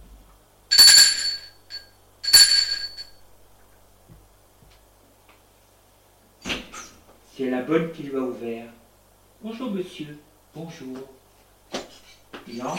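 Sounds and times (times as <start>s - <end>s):
doorbell ringing: 0.7s - 3.1s
speech: 7.4s - 8.8s, 9.4s - 11.2s, 12.5s - 12.7s.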